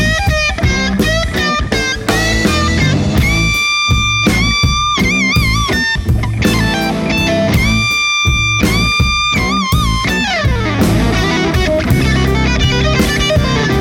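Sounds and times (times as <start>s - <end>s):
creamy blues music: 0.0s - 13.8s.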